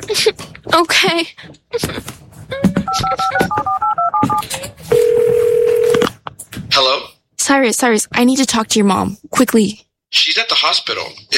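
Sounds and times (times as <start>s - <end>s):
speech: 0.1s - 3.8s, 6.8s - 11.3s
telephone being dialed for a call: 3.0s - 6.1s.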